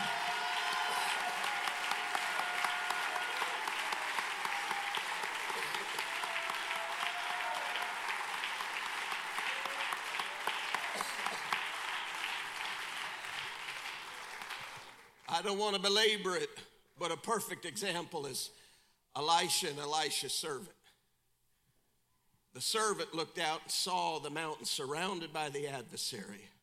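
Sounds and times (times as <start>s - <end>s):
audience clapping hands: 0.0s - 15.5s
speech: 15.4s - 18.6s, 19.2s - 20.8s, 22.6s - 26.5s.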